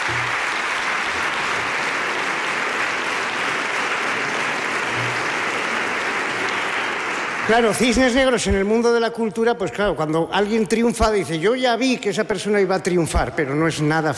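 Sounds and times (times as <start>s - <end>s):
audience applause: 0.0s - 9.0s
speech: 7.5s - 14.1s.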